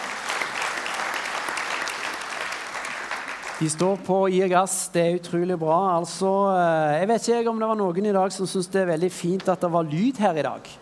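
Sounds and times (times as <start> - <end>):
audience applause: 0.0 - 3.8
speech: 3.6 - 10.7.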